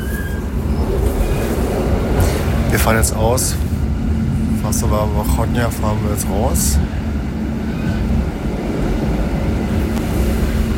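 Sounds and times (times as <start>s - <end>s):
older train rattling on tracks: 0.0s - 10.7s
speech: 2.8s - 3.7s, 4.7s - 7.0s.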